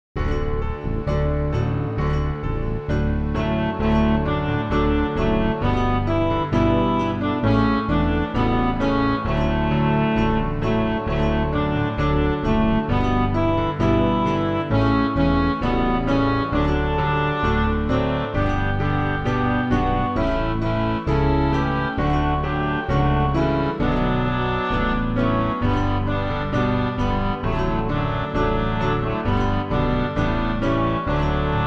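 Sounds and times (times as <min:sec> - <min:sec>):
instrumental music: 0:00.2 - 0:31.6.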